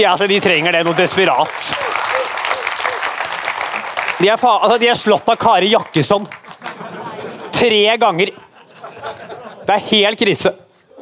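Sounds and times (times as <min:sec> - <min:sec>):
speech: 0:00.0 - 0:02.0, 0:04.2 - 0:06.4, 0:07.6 - 0:08.4, 0:09.1 - 0:10.6
audience applause: 0:00.2 - 0:07.2
laughter: 0:06.4 - 0:10.2.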